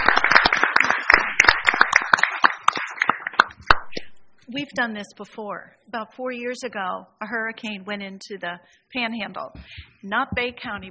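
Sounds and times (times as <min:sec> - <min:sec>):
applause: 0:00.0 - 0:04.0
speech: 0:04.5 - 0:10.8.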